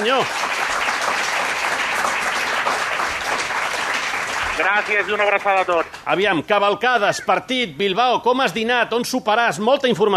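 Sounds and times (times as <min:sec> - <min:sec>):
speech: 0:00.0 - 0:01.2, 0:04.6 - 0:10.1
crowd applause: 0:00.0 - 0:06.1.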